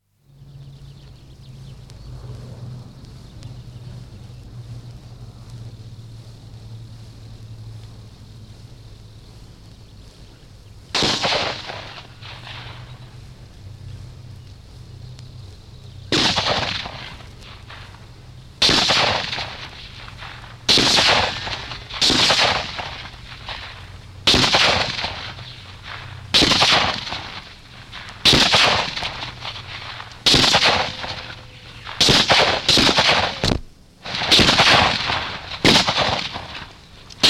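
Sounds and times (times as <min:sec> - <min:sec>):
rifle shots: 0:10.9 - 0:13.1, 0:16.1 - 0:18.0, 0:18.6 - 0:37.2
machine gunfire: 0:11.0 - 0:12.9, 0:16.1 - 0:18.0, 0:18.6 - 0:37.2.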